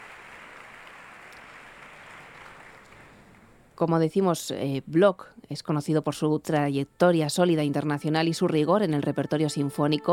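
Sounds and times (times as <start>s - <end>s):
audience applause for orchestra concertmaster: 0.0s - 3.3s
speech: 3.8s - 10.1s.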